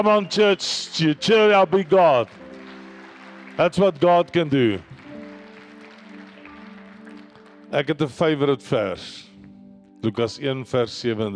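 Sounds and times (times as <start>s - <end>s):
speech: 0.0s - 2.4s, 3.6s - 4.9s, 7.7s - 9.2s, 10.0s - 11.3s
church audience applauding: 0.0s - 8.2s.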